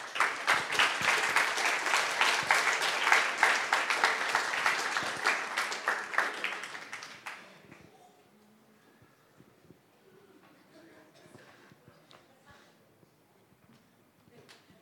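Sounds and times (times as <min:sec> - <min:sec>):
audience applause: 0:00.0 - 0:07.7.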